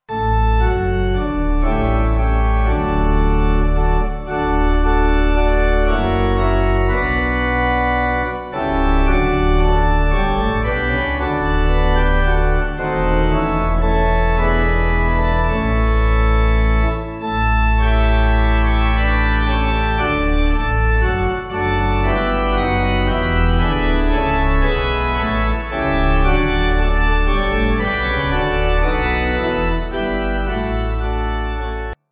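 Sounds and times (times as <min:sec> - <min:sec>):
pipe organ: 0:00.0 - 0:32.0.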